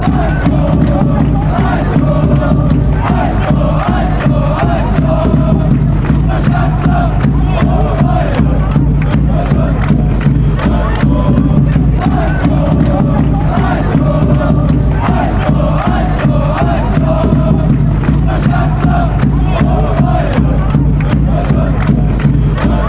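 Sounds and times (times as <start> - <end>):
football fans chanting after a goal: 0.0 - 22.8.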